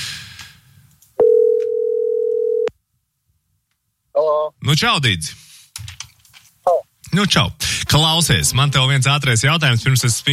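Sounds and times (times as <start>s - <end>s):
telephone ringing tone: 1.2s - 2.7s
speech: 4.5s - 5.4s, 6.6s - 10.3s.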